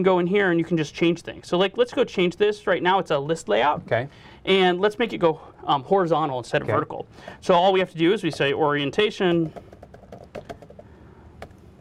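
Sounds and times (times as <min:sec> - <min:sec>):
speech: 0:00.0 - 0:09.7
typing on a computer keyboard: 0:09.2 - 0:11.7.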